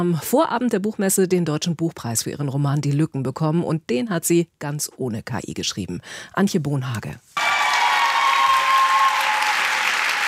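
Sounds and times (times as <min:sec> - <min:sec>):
speech: 0:00.0 - 0:07.3
applause and cheering in a reverberant hall: 0:07.4 - 0:10.2.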